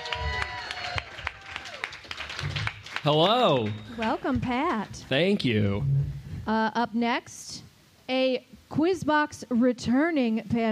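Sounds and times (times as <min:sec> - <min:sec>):
comedy show audience applauding a comedian: 0:00.0 - 0:05.5
speech: 0:03.0 - 0:07.5, 0:08.1 - 0:10.7.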